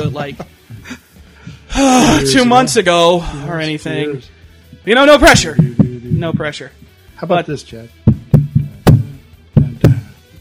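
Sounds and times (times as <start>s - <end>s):
speech: 0.2s - 1.0s, 1.8s - 8.0s
thumps on a wooden table: 8.1s - 10.1s.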